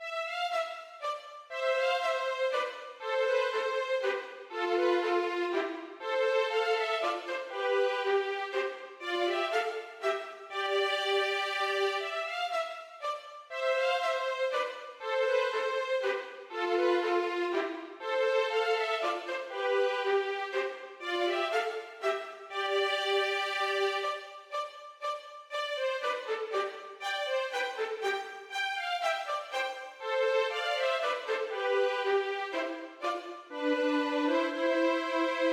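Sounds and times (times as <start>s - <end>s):
minuet for violin duet: 0.0s - 35.5s.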